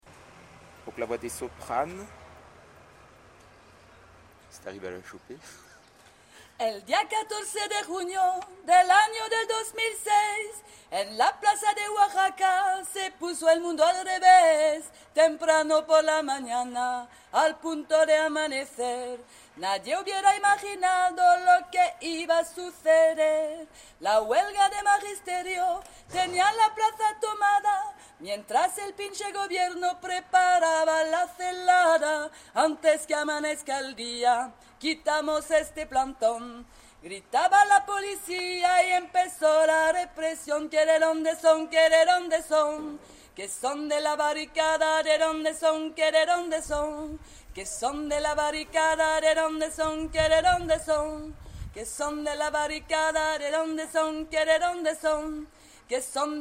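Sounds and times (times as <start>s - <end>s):
soprano singing: 6.6s - 56.3s.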